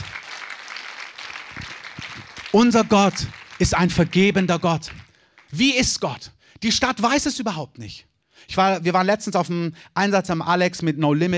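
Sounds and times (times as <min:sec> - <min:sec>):
audience applause: 0:00.0 - 0:05.8
speech: 0:02.5 - 0:11.3.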